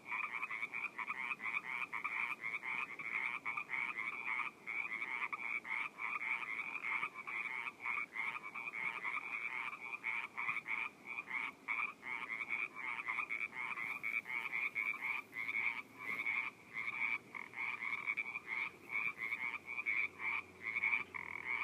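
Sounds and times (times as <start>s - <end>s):
frogs calling in a dense chorus in a pond in Orinda California: 0.0s - 21.6s.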